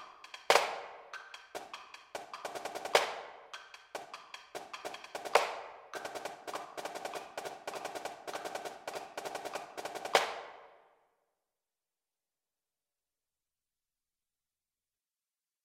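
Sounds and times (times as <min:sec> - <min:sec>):
drumline snare drum: 0:00.0 - 0:10.7.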